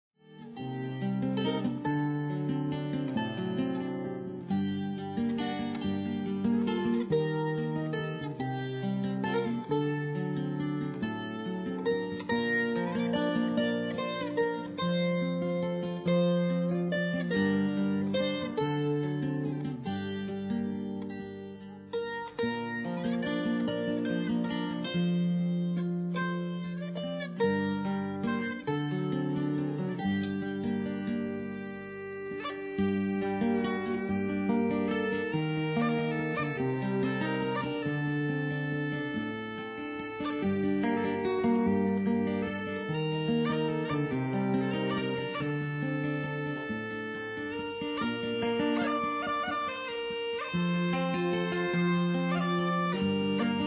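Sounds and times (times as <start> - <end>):
instrumental music: 0.2 - 53.6.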